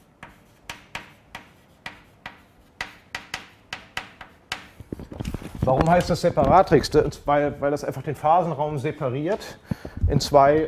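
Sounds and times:
writing on a board during a lecture: 0:00.0 - 0:04.8
speech: 0:05.7 - 0:10.6.

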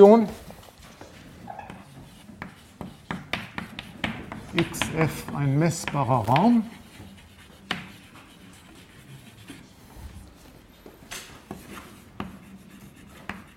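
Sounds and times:
speech: 0:00.0 - 0:00.4, 0:04.6 - 0:06.8
writing on a board during a mathematics lecture: 0:01.3 - 0:10.0, 0:11.4 - 0:13.5.

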